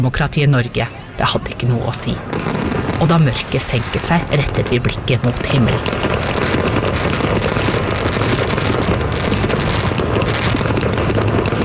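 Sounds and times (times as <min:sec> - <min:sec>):
speech: 0:00.0 - 0:06.7
fireworks exploding: 0:00.7 - 0:11.6.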